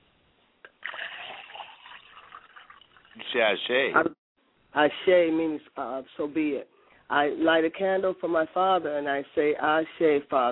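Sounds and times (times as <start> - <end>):
liquid poured out as a libation: 0.7 - 3.4
speech: 3.3 - 4.2, 4.8 - 10.4.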